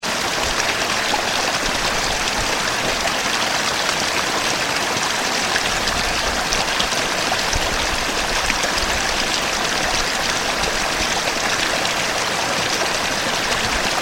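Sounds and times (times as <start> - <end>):
river: 0.0 - 14.0.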